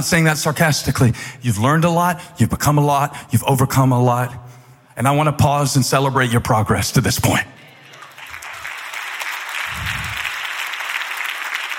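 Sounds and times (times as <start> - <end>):
speech: 0.0 - 4.4, 5.0 - 7.6
hesitant audience clapping: 7.8 - 11.7.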